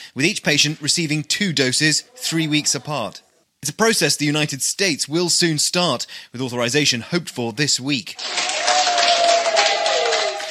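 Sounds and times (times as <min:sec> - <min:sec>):
speech: 0:00.1 - 0:09.0
nurses clapping: 0:08.2 - 0:10.5.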